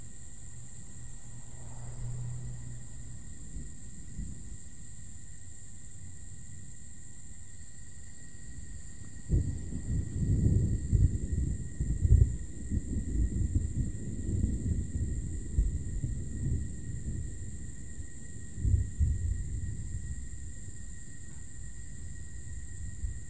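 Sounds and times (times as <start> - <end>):
thunder: 3.3 - 4.7, 9.2 - 23.2.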